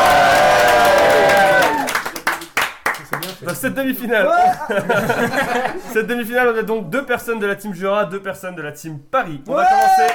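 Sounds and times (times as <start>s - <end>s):
applause sound effect: 0.0s - 3.5s
speech: 3.5s - 10.1s
laughter: 4.3s - 6.0s.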